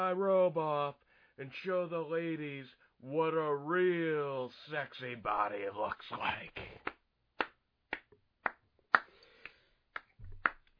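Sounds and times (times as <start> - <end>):
speech: 0.0 - 7.0
light polite golf clap: 6.8 - 10.7.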